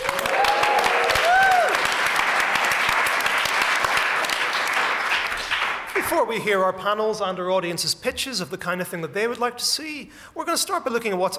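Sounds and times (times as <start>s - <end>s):
audience applause at the Science Museum: 0.0s - 6.1s
speech: 6.1s - 11.3s.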